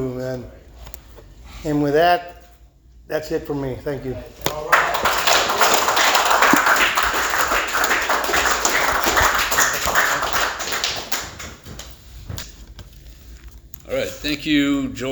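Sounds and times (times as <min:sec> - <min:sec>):
speech: 0:00.4 - 0:00.6, 0:01.6 - 0:02.4, 0:03.1 - 0:04.7, 0:14.2 - 0:15.1
audience applause: 0:04.5 - 0:11.6.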